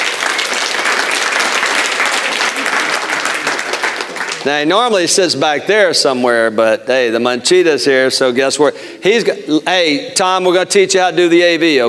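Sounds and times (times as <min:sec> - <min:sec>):
audience applause: 0:00.0 - 0:04.7
speech: 0:04.4 - 0:11.8.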